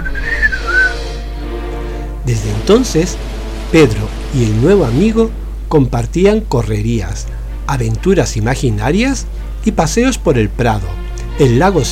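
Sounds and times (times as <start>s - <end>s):
person whistling birdlike trill: 0.0s - 1.1s
low steady hum: 1.2s - 11.9s
speech: 2.3s - 11.9s.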